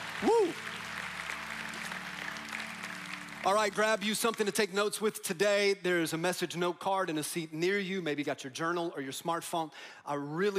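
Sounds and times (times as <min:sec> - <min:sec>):
audience clapping: 0:00.0 - 0:04.9
speech: 0:00.2 - 0:00.7, 0:03.4 - 0:10.5.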